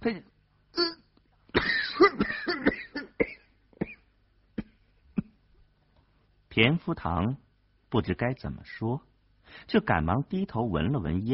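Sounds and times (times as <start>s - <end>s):
speech: 0.0s - 1.0s, 6.6s - 11.3s
violent coughing: 1.5s - 5.4s.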